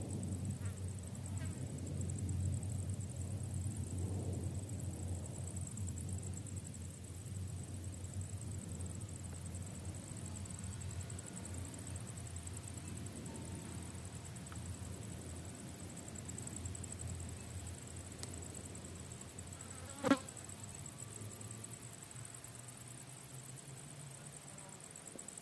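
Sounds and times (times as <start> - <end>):
early morning crickets: 0.0 - 25.3.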